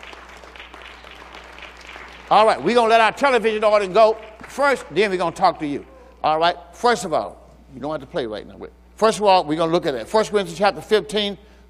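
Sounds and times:
audience clapping hands: 0:00.0 - 0:06.0
speech: 0:02.3 - 0:11.5.

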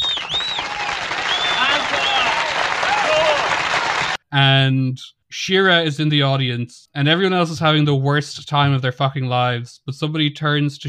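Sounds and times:
high sliding whistles: 0:00.0 - 0:02.4
audience applause: 0:00.0 - 0:04.2
voices cheering: 0:00.0 - 0:04.2
speech: 0:04.3 - 0:10.8.

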